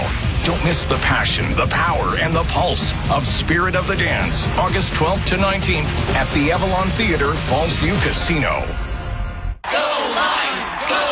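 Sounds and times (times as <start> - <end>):
speech: 0.4 - 8.8
crowd cheering in a radio commercial: 9.6 - 11.1.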